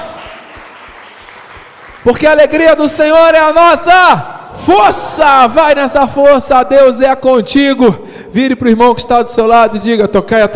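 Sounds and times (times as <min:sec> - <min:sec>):
crowd clapping: 0:00.0 - 0:02.9
speech: 0:02.0 - 0:10.5.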